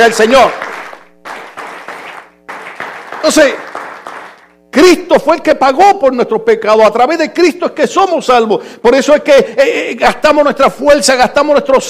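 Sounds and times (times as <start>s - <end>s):
speech: 0.0s - 0.6s, 3.2s - 3.6s, 4.8s - 11.8s
crowd applauding: 0.1s - 4.6s.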